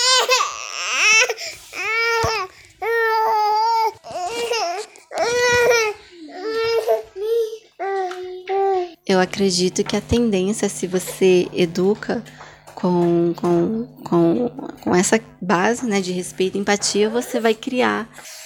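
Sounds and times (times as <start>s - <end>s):
baby crying and fussing: 0.0s - 9.0s
speech: 9.1s - 18.4s.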